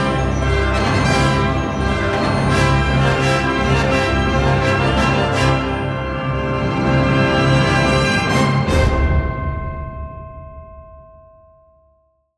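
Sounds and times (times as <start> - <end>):
fanfare: 0.0 - 9.8.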